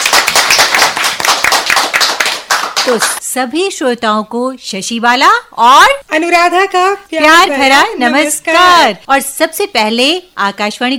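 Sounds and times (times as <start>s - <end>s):
listeners applauding at a radio station's foundation-day event in Kurukshetra: 0.0s - 3.2s
speech: 2.9s - 10.9s.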